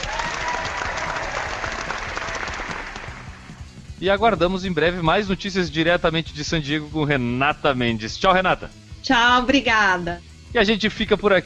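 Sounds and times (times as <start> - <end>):
audience applause: 0.0 - 3.6
speech: 4.0 - 11.4.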